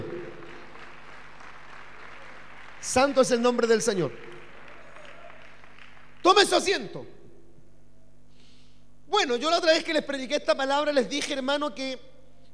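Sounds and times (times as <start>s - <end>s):
audience applause: 0.0s - 6.4s
speech: 2.8s - 4.3s, 6.2s - 7.2s, 9.1s - 12.5s.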